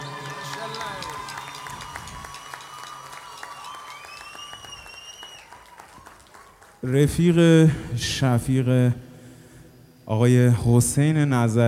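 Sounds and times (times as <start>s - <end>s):
concert audience applause for an orchestra's electric guitarist: 0.0s - 7.1s
speech: 6.8s - 9.0s, 10.1s - 11.6s.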